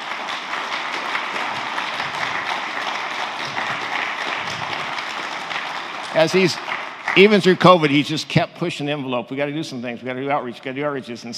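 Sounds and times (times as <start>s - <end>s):
crowd applause: 0.0s - 8.3s
speech: 6.2s - 11.3s.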